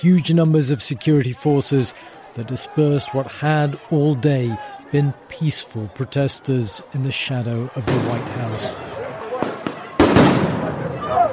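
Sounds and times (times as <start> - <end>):
speech: 0.0 - 8.9
stun grenades exploding at street protest: 9.4 - 10.8.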